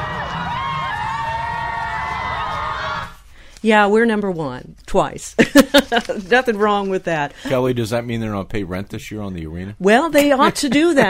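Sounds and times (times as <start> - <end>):
arena crowd cheering at trophy: 0.0 - 3.2
speech: 3.6 - 11.0.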